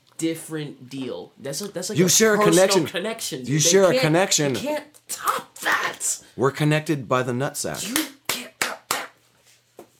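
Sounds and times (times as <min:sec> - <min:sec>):
speech: 0:00.2 - 0:08.1
hard hand clap: 0:07.8 - 0:09.2.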